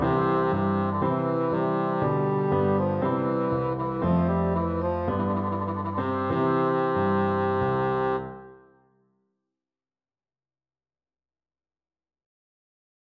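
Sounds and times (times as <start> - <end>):
bassoon: 0.0 - 8.7.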